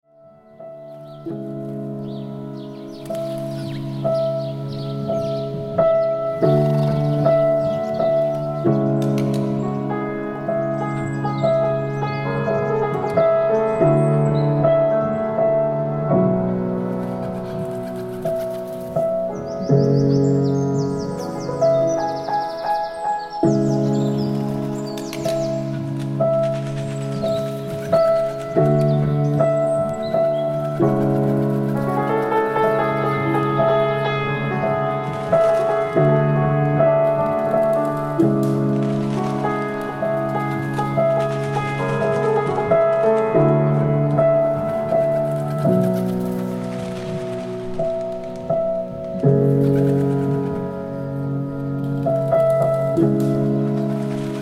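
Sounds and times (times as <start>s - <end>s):
piano: 0.0s - 54.3s
wings flapping: 1.4s - 9.8s, 16.8s - 54.3s.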